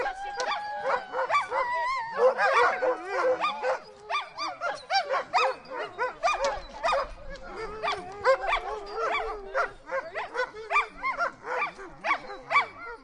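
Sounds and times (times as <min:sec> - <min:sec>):
sled dogs barking, yipping and whining: 0:00.0 - 0:13.0.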